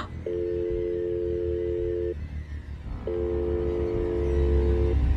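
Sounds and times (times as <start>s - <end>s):
phone call ringback tone ringing unanswered: 0.2s - 2.2s, 3.0s - 5.0s.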